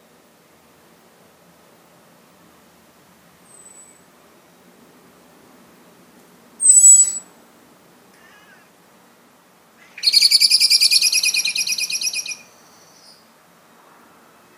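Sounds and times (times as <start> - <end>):
common blackbird calls: 6.6 - 7.3, 9.8 - 13.2.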